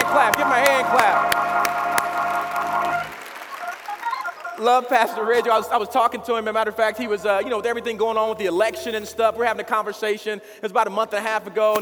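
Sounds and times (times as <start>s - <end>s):
crowd clapping for pastor: 0.0s - 6.3s
cheers and whoops: 0.6s - 4.6s
speech: 4.6s - 11.7s.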